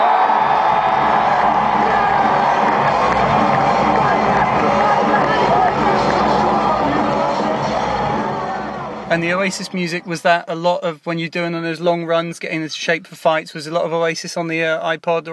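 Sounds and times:
concert crowd cheering: 0:00.0 - 0:10.5
speech: 0:09.2 - 0:15.3.

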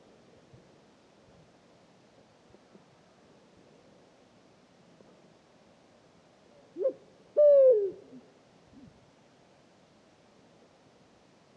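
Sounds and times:
Pharaoh eagle-owl hooting: 0:06.8 - 0:08.2.

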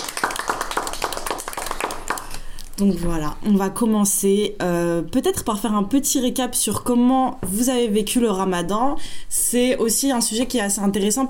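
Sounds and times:
podcast hosts clapping for themselves: 0:00.0 - 0:02.7
speech: 0:02.8 - 0:11.2.

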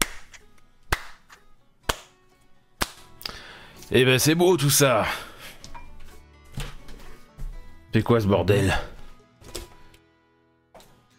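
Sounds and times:
hand clapping: 0:00.0 - 0:02.2, 0:02.8 - 0:03.4
speech: 0:03.9 - 0:05.3, 0:07.9 - 0:08.9.

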